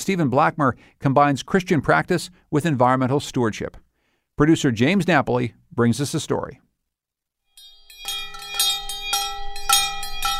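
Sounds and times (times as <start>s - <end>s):
speech: 0.0s - 3.8s, 4.4s - 6.6s
two large hand bells ringing: 7.6s - 10.3s.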